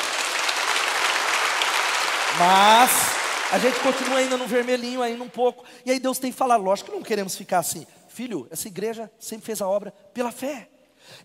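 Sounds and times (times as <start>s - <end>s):
audience applause: 0.0s - 5.4s
speech: 2.4s - 11.2s.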